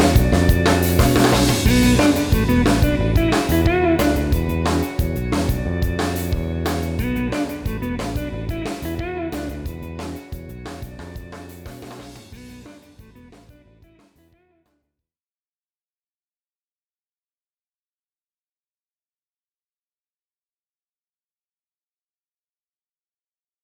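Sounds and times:
instrumental music: 0.0s - 14.1s.

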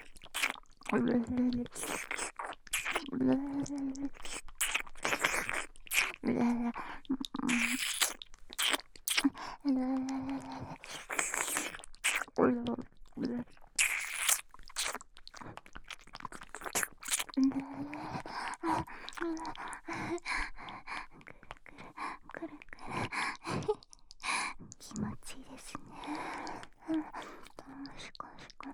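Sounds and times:
ear licking: 0.0s - 24.3s
loud oral slurping: 4.2s - 6.2s, 7.4s - 9.4s, 10.6s - 12.4s, 13.8s - 17.4s.

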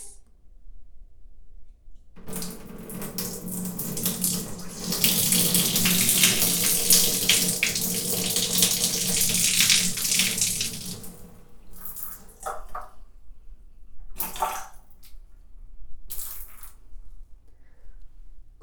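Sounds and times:
person urinating standing in a bath: 2.2s - 13.0s, 14.2s - 15.0s
shower running: 2.2s - 13.0s.

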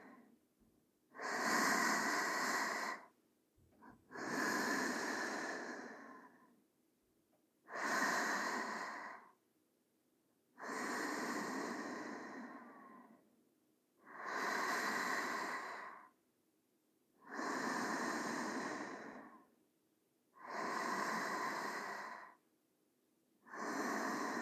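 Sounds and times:
sleeping breathing: 1.1s - 3.2s, 3.8s - 6.6s, 7.7s - 9.4s, 10.6s - 13.2s, 14.0s - 16.2s, 17.2s - 19.5s, 20.4s - 22.4s, 23.4s - 24.4s.

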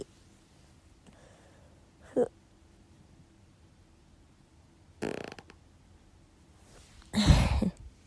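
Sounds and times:
fart: 5.0s - 5.6s.

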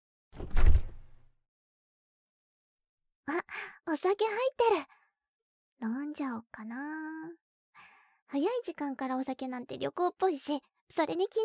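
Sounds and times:
refrigerator door opening: 0.4s - 1.2s
speech: 3.3s - 5.0s, 5.8s - 11.4s.

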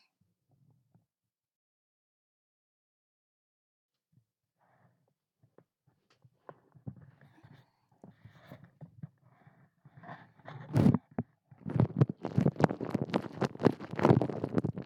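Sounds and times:
sounds inside a vagina recorded with a shotgun microphone: 5.4s - 14.8s.

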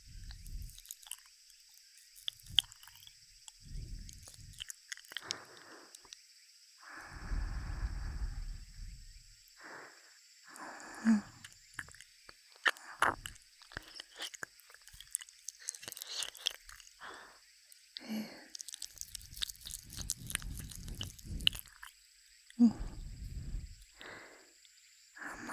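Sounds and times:
breathing: 0.0s - 0.8s, 3.5s - 6.2s, 6.8s - 11.6s, 15.6s - 21.9s, 22.6s - 25.5s
ear licking: 0.0s - 1.3s, 2.1s - 6.2s, 6.8s - 9.9s, 10.5s - 24.2s.

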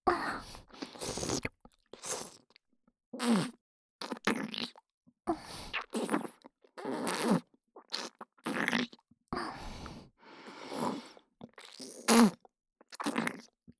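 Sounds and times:
wet sucking mouth sounds in the right ear: 0.8s - 2.6s, 3.2s - 4.8s, 5.6s - 9.0s, 10.6s - 13.5s.

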